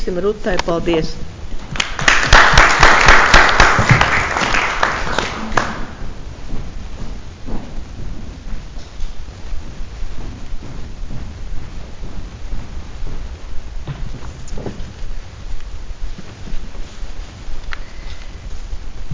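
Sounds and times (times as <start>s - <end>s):
speech: 0.0s - 1.8s
group applause in council meeting: 1.7s - 6.1s.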